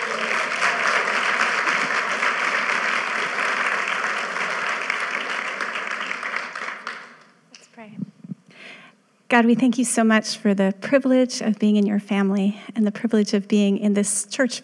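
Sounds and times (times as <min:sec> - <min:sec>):
church congregation applause welcoming a couple: 0:00.0 - 0:07.4
speech: 0:09.3 - 0:14.6.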